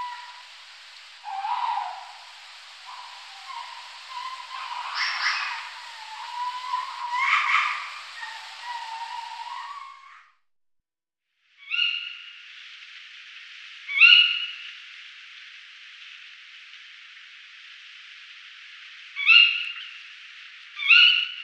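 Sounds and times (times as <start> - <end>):
tawny owl calls: 0.0 - 10.3, 11.6 - 12.4, 13.9 - 14.7, 19.1 - 20.0, 20.7 - 21.4.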